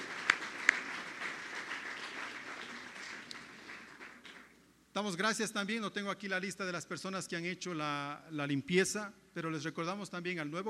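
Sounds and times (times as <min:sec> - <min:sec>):
audience applause: 0:00.0 - 0:04.5
speech: 0:05.0 - 0:10.6.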